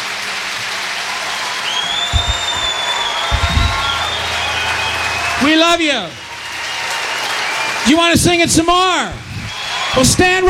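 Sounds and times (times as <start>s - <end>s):
audience applause: 0.0s - 8.3s
speech: 5.4s - 6.2s, 7.9s - 9.2s, 10.0s - 10.4s.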